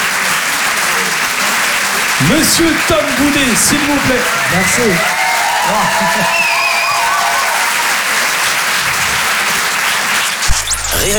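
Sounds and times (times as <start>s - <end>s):
laughter: 0.0s - 10.4s
audience applause in comedy club: 0.0s - 11.1s
speech: 2.2s - 6.6s
faint whoops: 4.2s - 8.4s.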